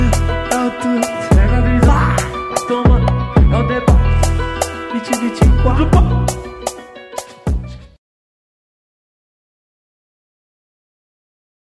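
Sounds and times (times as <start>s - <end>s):
funk medley: 0.0s - 8.0s.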